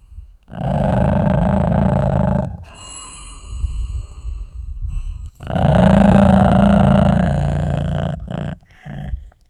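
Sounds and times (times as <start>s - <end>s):
dog growling: 0.5s - 2.8s, 5.3s - 9.4s.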